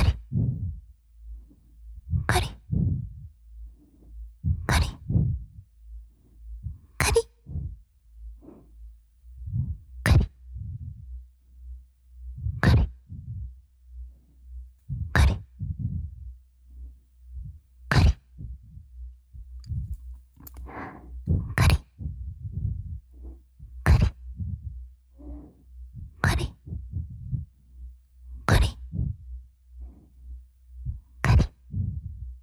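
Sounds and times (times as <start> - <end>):
ASMR scratching loop: 0.0 - 0.7, 2.1 - 3.2, 4.4 - 5.6, 6.6 - 7.8, 9.4 - 11.0, 12.4 - 13.5, 14.9 - 16.2, 17.9 - 18.8, 20.6 - 27.4, 28.4 - 29.2, 31.2 - 32.2.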